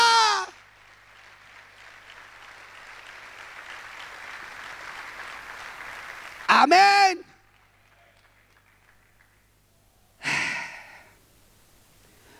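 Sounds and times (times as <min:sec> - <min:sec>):
audience applause: 0:00.0 - 0:09.6
speech: 0:06.6 - 0:07.2.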